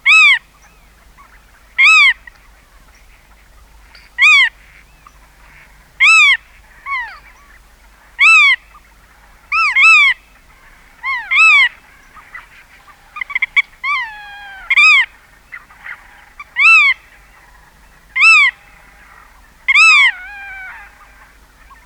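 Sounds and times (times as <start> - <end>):
black-tailed godwit nasal calls: 0.1 - 0.4, 4.2 - 4.8, 5.4 - 7.3, 8.2 - 8.7, 9.5 - 17.6, 18.2 - 21.8.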